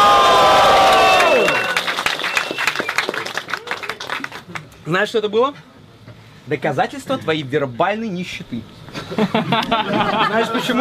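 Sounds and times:
crowd roaring and cheering: 0:00.0 - 0:04.0
whoops: 0:00.0 - 0:04.1
scattered clapping: 0:00.8 - 0:04.8
speech: 0:04.9 - 0:05.7, 0:06.4 - 0:10.7
laughter: 0:08.9 - 0:10.7.

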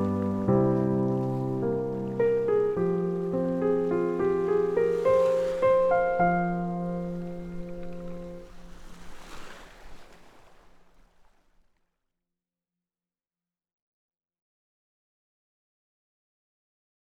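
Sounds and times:
instrumental chilled jazz: 0:00.0 - 0:09.0
relaxing waves: 0:00.0 - 0:11.8.

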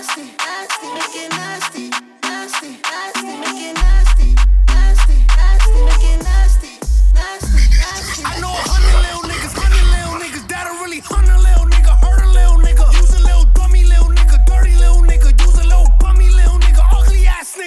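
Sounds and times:
bass: 0:03.8 - 0:10.4, 0:11.1 - 0:17.4.

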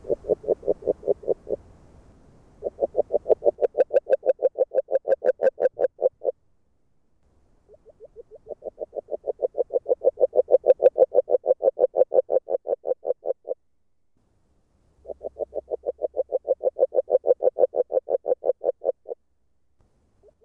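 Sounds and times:
agile frog call in Hungary: 0:00.0 - 0:01.7, 0:02.6 - 0:06.4, 0:07.7 - 0:13.6, 0:15.0 - 0:19.2.

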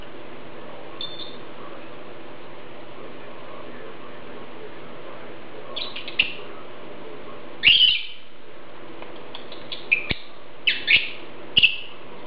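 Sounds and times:
lovebird giving shrill raspy chirps: 0:05.8 - 0:06.4, 0:07.6 - 0:08.3, 0:09.4 - 0:12.0.

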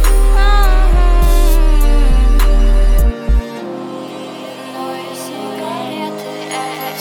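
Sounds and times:
low bass tones at 37, 39 and 41 Hz: 0:00.0 - 0:03.4.

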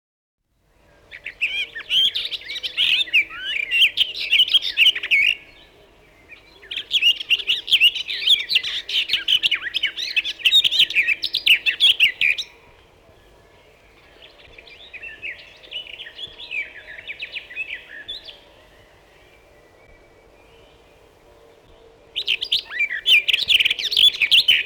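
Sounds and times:
garden warbler singing: 0:00.7 - 0:24.6.

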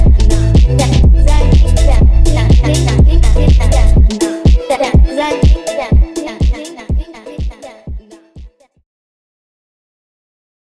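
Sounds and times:
phonk remix with boosted bass: 0:00.0 - 0:08.1.

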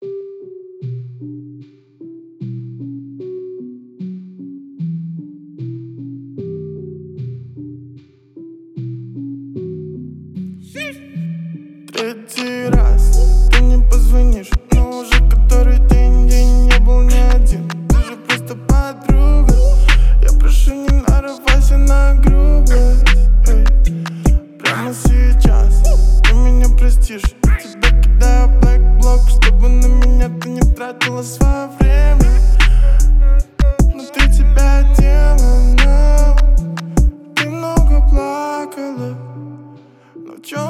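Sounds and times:
41 44 and 46 Hz low bass tones: 0:12.7 - 0:18.0, 0:18.7 - 0:24.4, 0:25.0 - 0:30.8, 0:31.4 - 0:37.1, 0:37.8 - 0:38.2.

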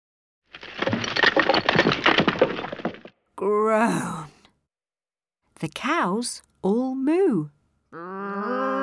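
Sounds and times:
heavy load crashing down: 0:00.5 - 0:03.1
speech: 0:03.4 - 0:04.3, 0:05.6 - 0:08.7.

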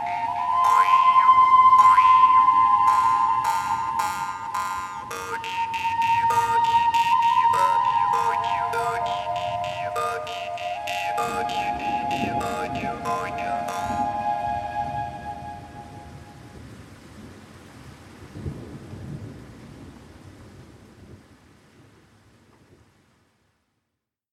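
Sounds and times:
ancient flute playing: 0:00.0 - 0:16.5.

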